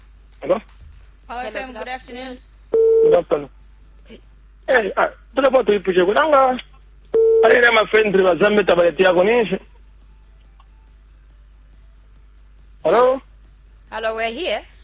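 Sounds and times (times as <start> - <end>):
speech: 0.4 - 6.7, 7.4 - 9.7, 12.8 - 13.2, 13.9 - 14.7
telephone tone as a caller's line connects on a radio call-in show: 2.8 - 3.2, 7.2 - 7.7.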